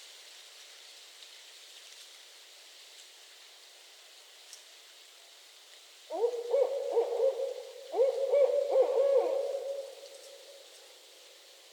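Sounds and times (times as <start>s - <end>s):
faint steady background hiss: 0.0s - 11.7s
Barred owl hooting: 6.1s - 10.6s.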